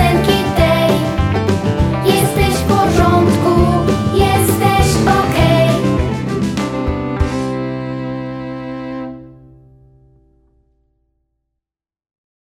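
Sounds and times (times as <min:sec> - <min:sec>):
song: 0:00.0 - 0:09.4.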